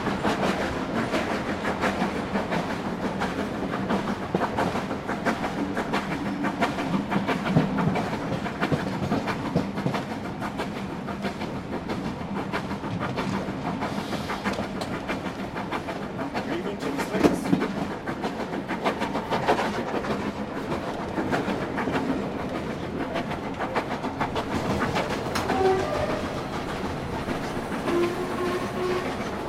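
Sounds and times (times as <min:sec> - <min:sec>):
train departing York: 0:00.0 - 0:29.4.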